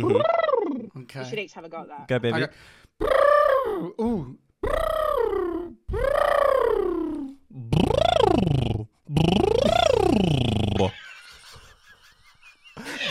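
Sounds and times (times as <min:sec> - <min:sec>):
speech: 0:00.0 - 0:00.4, 0:01.1 - 0:04.8
lip trill imitating an accelerating car: 0:03.0 - 0:11.0
laughter: 0:10.8 - 0:13.0.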